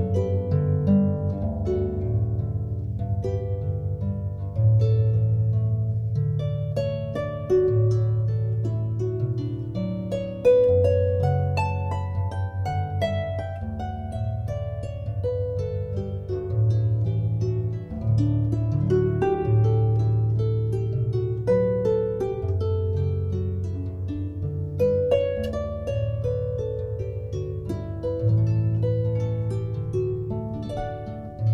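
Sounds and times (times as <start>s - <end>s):
harpist playing harp in San Francisco: 0.0s - 31.5s.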